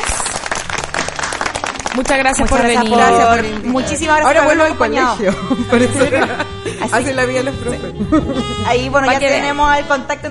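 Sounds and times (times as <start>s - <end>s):
crowd applauding: 0.0s - 3.9s
speech: 2.0s - 10.2s
laughter: 2.8s - 8.9s.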